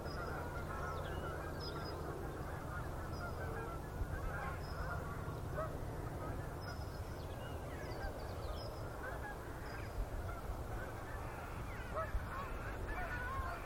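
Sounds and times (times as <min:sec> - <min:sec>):
low steady rumble: 0:00.0 - 0:13.6
flock of geese honking: 0:00.1 - 0:01.8, 0:02.4 - 0:06.4, 0:09.0 - 0:13.6.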